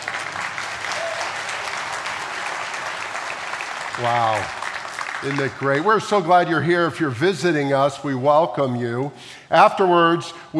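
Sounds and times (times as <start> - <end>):
audience applause: 0.0 - 6.5
speech: 4.0 - 4.6, 5.2 - 10.5.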